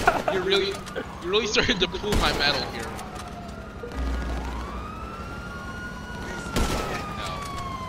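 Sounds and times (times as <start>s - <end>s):
laughter: 0.0s - 1.2s
police car siren in a video game: 0.0s - 7.8s
speech: 0.4s - 3.1s.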